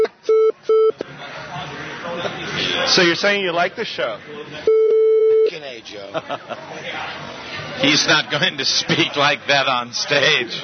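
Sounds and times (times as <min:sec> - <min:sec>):
censor beep: 0:00.0 - 0:01.0, 0:04.7 - 0:05.5
noise: 0:00.0 - 0:10.6
voices: 0:00.0 - 0:10.6
laughter: 0:01.5 - 0:02.9, 0:05.5 - 0:07.4
speech: 0:02.9 - 0:04.8, 0:05.8 - 0:10.6.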